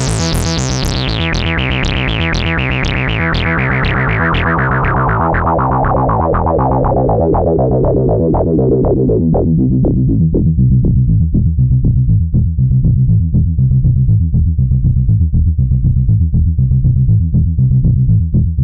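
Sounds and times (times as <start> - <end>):
synth filter bass with resonance and FM amount: 0.0 - 18.6.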